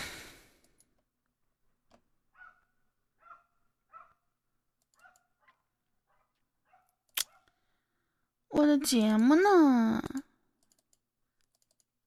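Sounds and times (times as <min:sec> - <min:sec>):
dog barking outside: 0:02.3 - 0:04.3, 0:04.9 - 0:07.6
speech: 0:08.7 - 0:10.2.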